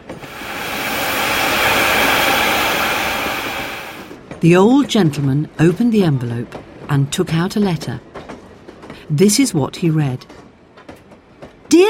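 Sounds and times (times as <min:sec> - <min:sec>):
steam train hissing and puffing away: 0:00.0 - 0:04.2
speech: 0:04.4 - 0:08.1, 0:09.1 - 0:10.5.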